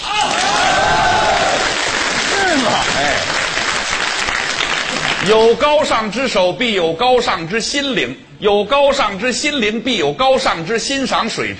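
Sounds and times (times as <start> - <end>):
audience applause: 0.0 - 5.4
speech: 5.3 - 11.5.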